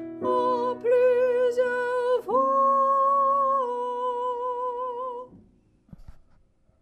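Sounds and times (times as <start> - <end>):
tenor singing: 0.2 - 5.3.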